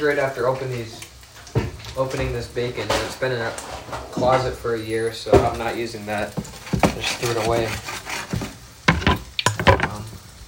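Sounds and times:
speech: 0.0s - 1.1s, 2.0s - 8.0s
Spam frying in a pan with a faint sizzle: 0.0s - 10.4s
utensil scraping and clacking against the pan: 2.0s - 4.7s, 5.4s - 10.2s.

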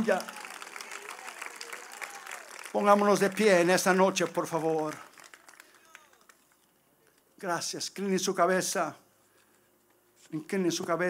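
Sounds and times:
speech: 0.0s - 0.4s, 2.8s - 5.1s, 7.4s - 9.0s, 10.3s - 11.0s
audience applause: 0.0s - 6.6s.

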